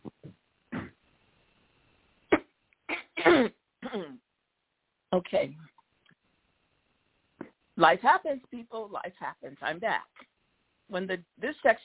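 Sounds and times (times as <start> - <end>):
person clearing throat: 0.7 - 1.0, 2.3 - 4.2
speech: 5.2 - 5.6, 7.8 - 10.1, 10.9 - 11.8.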